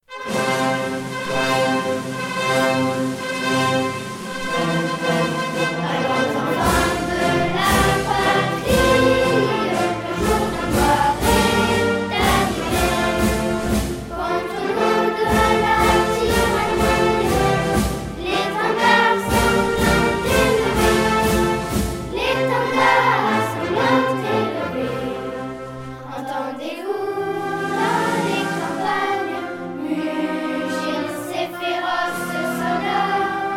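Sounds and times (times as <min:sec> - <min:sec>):
pupils singing a national anthem: 0:00.2 - 0:33.5.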